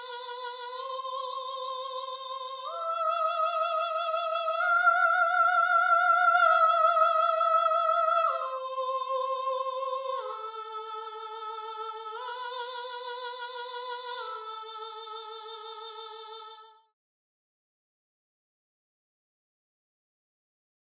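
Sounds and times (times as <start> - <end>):
soprano singing counterpoint: 0.0 - 16.7.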